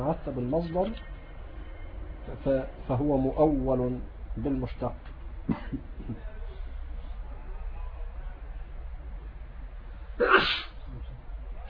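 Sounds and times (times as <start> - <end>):
speech: 0.0 - 1.1, 2.3 - 6.3
low hum: 0.0 - 11.6
person sneezing: 10.2 - 10.8.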